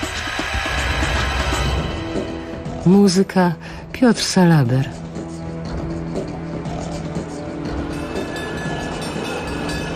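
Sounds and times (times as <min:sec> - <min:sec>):
tram heading to Śródmieście rolling along its rails: 0:00.0 - 0:03.3, 0:04.2 - 0:09.9
speech: 0:02.8 - 0:05.0.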